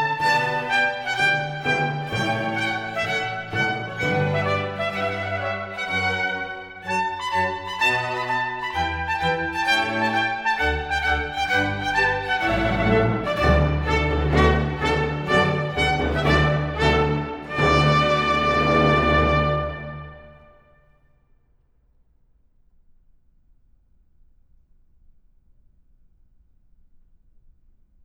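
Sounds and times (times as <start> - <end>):
strings: 0.0 - 20.8
trumpet: 0.0 - 21.0.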